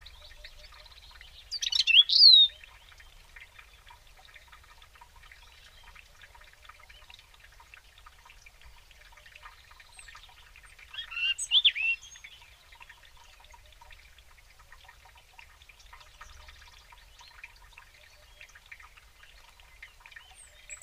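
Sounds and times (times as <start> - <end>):
European robin singing: 0.0 - 3.8, 9.6 - 13.5, 19.6 - 20.8.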